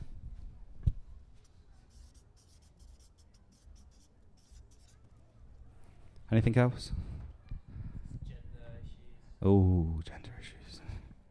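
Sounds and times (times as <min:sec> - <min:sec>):
pen on paper strokes while taking notes: 0:01.8 - 0:05.0
speech: 0:06.3 - 0:07.1, 0:09.4 - 0:10.8.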